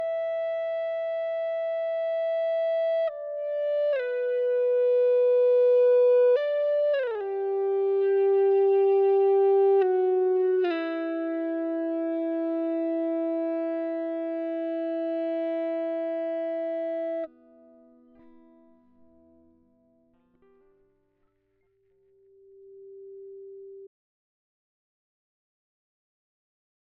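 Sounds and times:
dry ebow guitar: 0:00.0 - 0:20.8.

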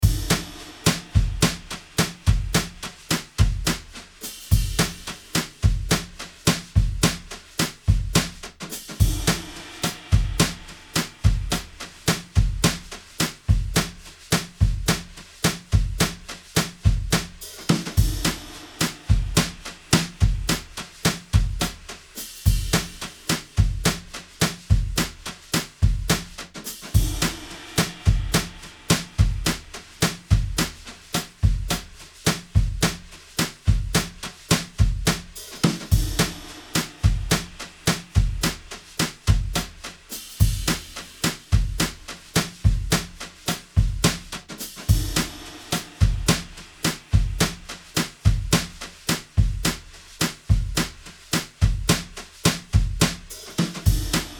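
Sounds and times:
drum brushes: 0:00.0 - 0:54.3.

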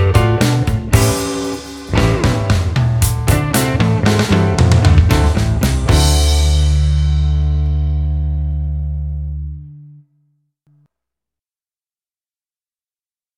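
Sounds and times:
trippy groove music: 0:00.0 - 0:08.3.

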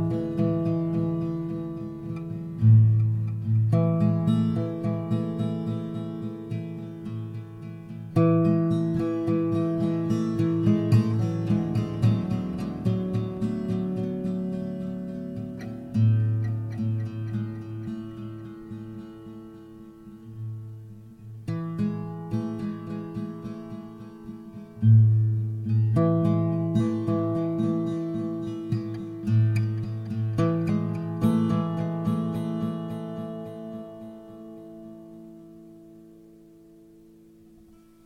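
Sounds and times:
guitar arpeggio in A with delay at 108: 0:00.0 - 0:36.2.

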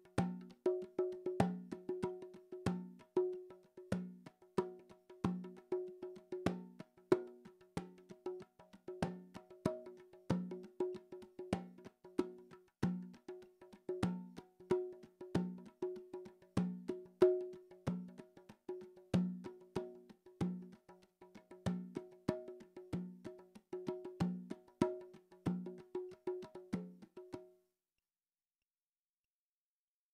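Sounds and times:
mellow bongo drums: 0:00.0 - 0:27.5.

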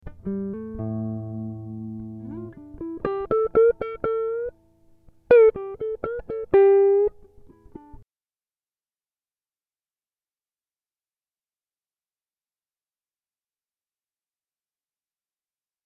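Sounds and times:
Am60 guitar improvisation: 0:00.0 - 0:08.0.

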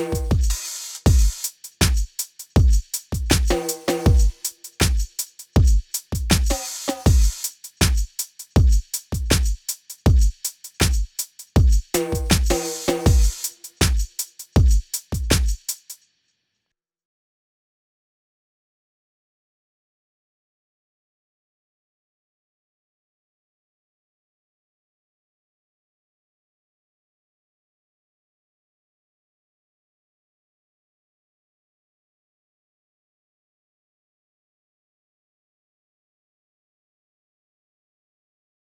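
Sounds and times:
drums: 0:00.0 - 0:16.0.

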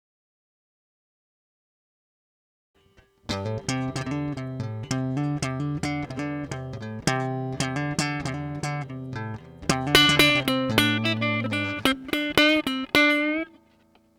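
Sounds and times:
groove music: 0:03.3 - 0:13.4.

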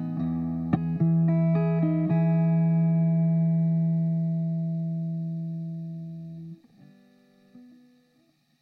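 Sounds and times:
happy song chords: 0:00.0 - 0:06.5.

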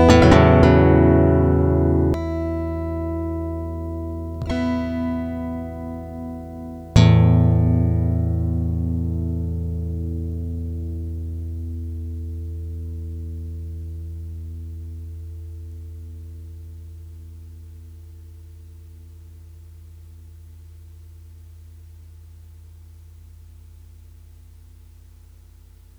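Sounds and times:
two guitars improvising: 0:00.0 - 0:16.5.

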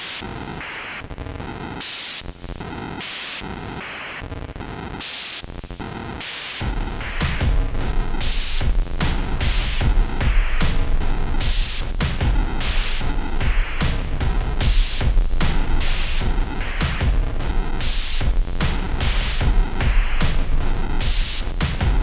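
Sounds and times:
noise effects: 0:06.6 - 0:22.0
percussion: 0:06.6 - 0:22.0.

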